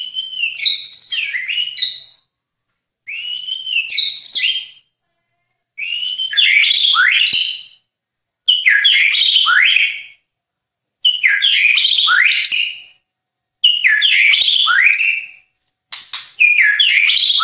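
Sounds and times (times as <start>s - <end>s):
bird song: 0.0s - 2.3s, 3.1s - 4.9s, 5.8s - 7.9s, 8.5s - 10.3s, 11.0s - 13.0s, 13.6s - 15.5s, 16.1s - 17.4s.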